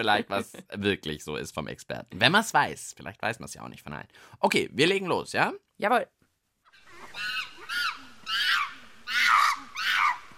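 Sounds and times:
speech: 0.0 - 6.2
monkeys screaming: 6.7 - 10.3.

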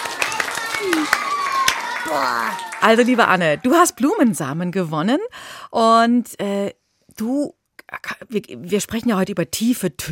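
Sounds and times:
scattered clapping for a correct quiz answer: 0.0 - 3.7
speech: 2.0 - 10.1.

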